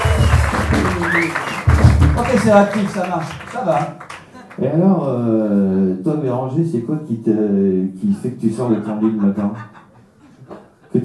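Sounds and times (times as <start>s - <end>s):
brief rising whistle-like tone: 0.0s - 1.8s
audience applause: 0.0s - 4.7s
speech: 1.2s - 1.5s, 2.2s - 9.8s
laughter: 8.7s - 11.0s.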